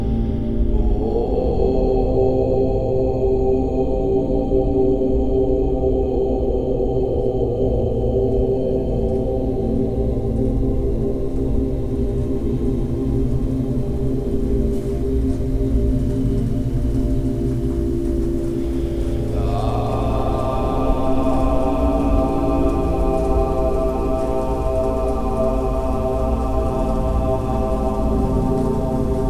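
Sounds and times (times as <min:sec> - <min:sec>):
relaxing music for meditation: 0:00.0 - 0:29.2
rain: 0:08.3 - 0:29.2.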